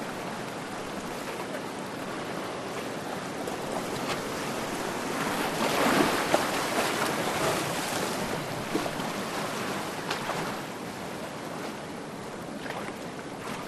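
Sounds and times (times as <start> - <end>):
distant surf: 0.0 - 13.6
medium ocean waves splashing into rocks: 0.0 - 13.6.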